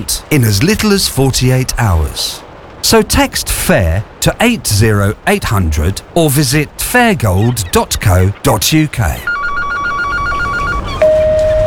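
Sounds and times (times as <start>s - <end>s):
speech: 0.0s - 9.3s
electronic telephone ringing unanswered: 9.2s - 11.6s
sustained beep tone: 9.2s - 11.6s.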